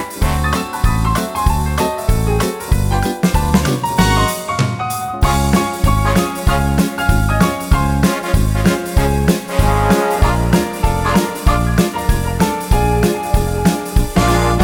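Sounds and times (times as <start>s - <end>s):
quickstep dance music: 0.0s - 14.6s.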